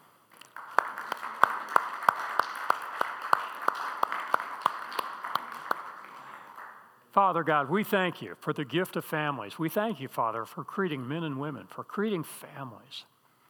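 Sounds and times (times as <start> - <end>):
audience applause: 0.4 - 6.9
speech: 7.2 - 13.1.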